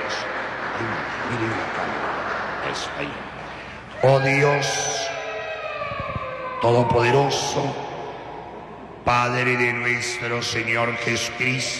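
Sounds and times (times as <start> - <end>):
audience applause: 0.0 - 5.1
speech: 0.8 - 3.3, 4.0 - 5.0, 6.6 - 7.8, 9.0 - 11.7.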